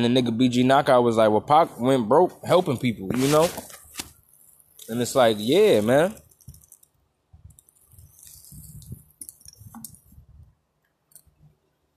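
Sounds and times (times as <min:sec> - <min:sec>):
speech: 0:00.0 - 0:03.7, 0:04.9 - 0:06.2
person sipping a drink: 0:07.6 - 0:10.1.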